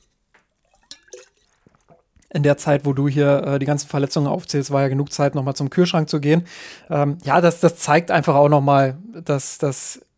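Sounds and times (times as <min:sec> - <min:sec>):
drink being poured: 0:00.6 - 0:02.1
speech: 0:02.3 - 0:10.1.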